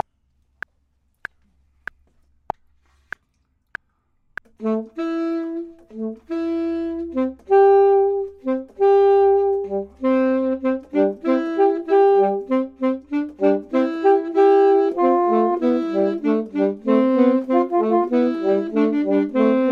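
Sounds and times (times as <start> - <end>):
saxophone: 4.5 - 19.7
clarinet: 4.6 - 19.7.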